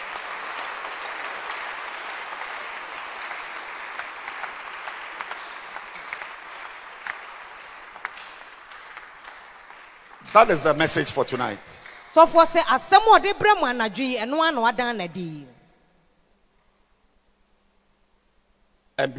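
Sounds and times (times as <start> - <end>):
audience clapping: 0.0 - 13.8
speech: 10.3 - 15.5, 19.0 - 19.1.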